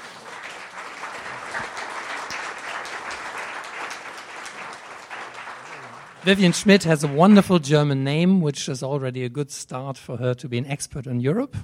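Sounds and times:
audience applauding to welcome guests at a talk event: 0.0 - 8.0
speech: 6.2 - 11.6.

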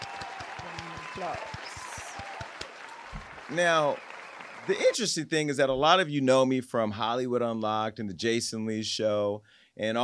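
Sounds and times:
audience applause: 0.0 - 5.0
people cheering: 0.0 - 5.2
speech: 1.2 - 1.7, 3.5 - 4.1, 4.7 - 10.0.

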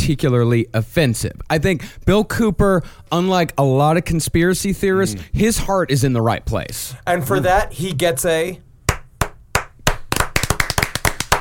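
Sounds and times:
speech: 0.0 - 8.7
round of applause: 8.9 - 11.4.

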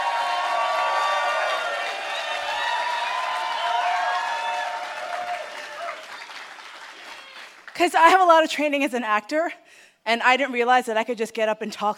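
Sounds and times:
crowd applauding and cheering: 0.0 - 7.8
speech: 7.8 - 11.9.

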